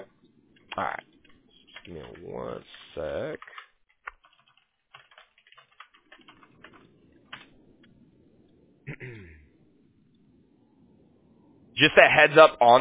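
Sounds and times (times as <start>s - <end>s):
typing on a computer keyboard while copying and pasting: 0.6s - 2.4s, 3.4s - 7.5s
speech: 1.9s - 3.5s, 11.8s - 12.7s.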